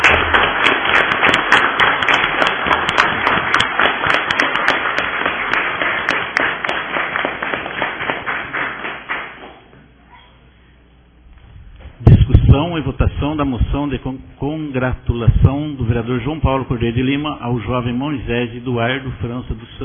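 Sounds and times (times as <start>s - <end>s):
round of applause: 0.0s - 9.7s
speech: 12.9s - 19.8s.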